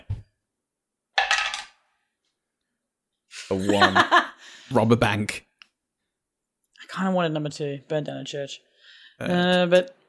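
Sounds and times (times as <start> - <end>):
dice rolling on a table: 1.2 - 1.8
speech: 3.5 - 5.5, 6.9 - 10.0.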